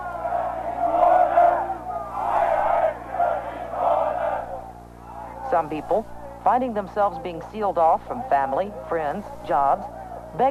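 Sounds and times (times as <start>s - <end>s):
crowd shouting and jeering: 0.0s - 5.6s
speech: 5.5s - 10.5s.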